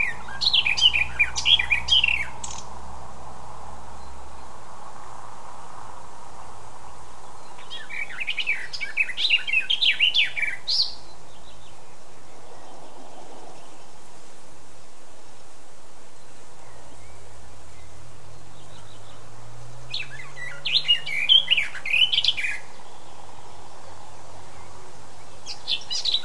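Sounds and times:
Eurasian blackcap Sylvia atricapilla singing: 0:00.0 - 0:02.8, 0:07.2 - 0:12.7, 0:16.2 - 0:26.2.

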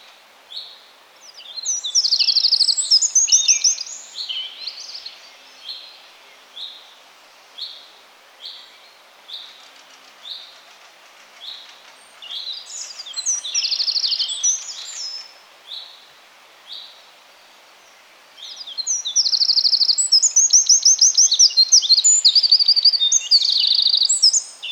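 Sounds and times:
Eurasian wren song: 0:00.6 - 0:05.9, 0:12.1 - 0:16.0, 0:18.4 - 0:24.6.

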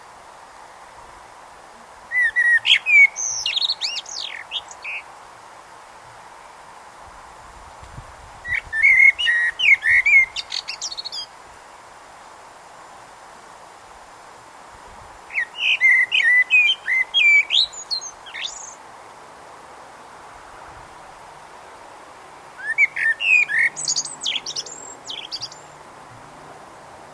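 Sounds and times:
Eurasian blackbird singing: 0:02.1 - 0:05.1, 0:08.5 - 0:11.3, 0:15.3 - 0:18.8, 0:22.6 - 0:25.8.

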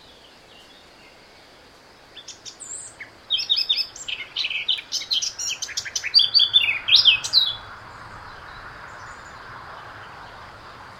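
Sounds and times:
Eurasian blackcap Sylvia atricapilla song: 0:02.1 - 0:10.4.

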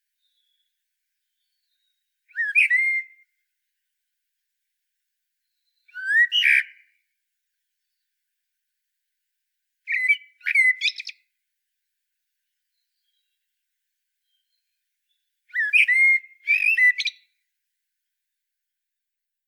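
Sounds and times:
common blackbird singing: 0:01.4 - 0:03.2, 0:05.4 - 0:06.9, 0:09.9 - 0:11.2, 0:15.2 - 0:17.3.

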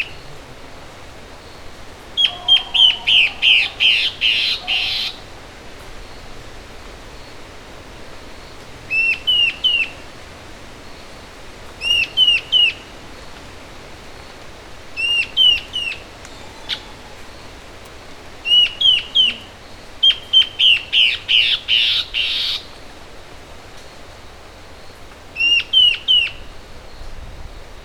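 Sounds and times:
bird calls: 0:00.0 - 0:22.9, 0:23.8 - 0:27.2.

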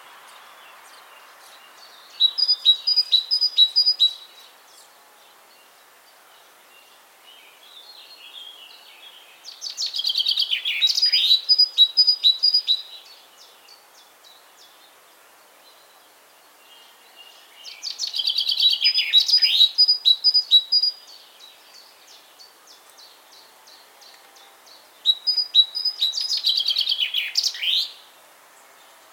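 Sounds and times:
great tit calls and chatter: 0:00.0 - 0:29.1.

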